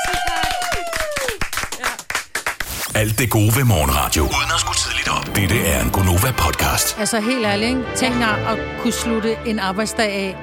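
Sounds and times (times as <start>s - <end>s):
people clapping: 0.0s - 2.9s
speech: 3.0s - 10.4s.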